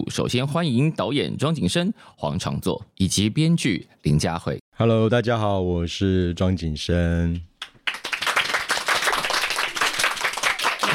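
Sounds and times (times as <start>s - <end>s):
speech: 0.1s - 7.5s
audience applause: 7.8s - 10.9s.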